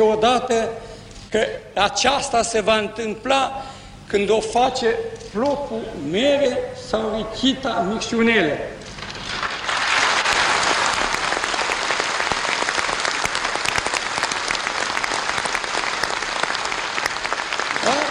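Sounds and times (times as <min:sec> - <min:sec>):
speech: 0:00.0 - 0:08.8
audience applause: 0:08.9 - 0:18.1.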